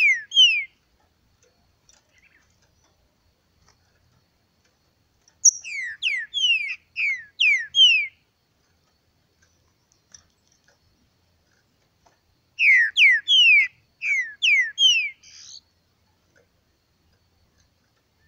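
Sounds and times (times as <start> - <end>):
green-winged saltator song of downslurred whistled notes: 0.0 - 0.8, 5.4 - 8.2, 12.6 - 15.6.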